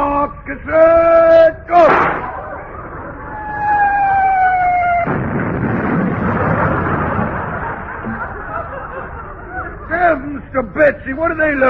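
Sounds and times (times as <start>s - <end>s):
speech: 0.4s - 1.2s, 10.6s - 11.6s
naval shell from the home fleet exploding: 1.9s - 8.4s
falling whistling tone of incoming naval shell: 2.2s - 5.1s
laughter: 2.3s - 3.5s, 6.4s - 10.5s.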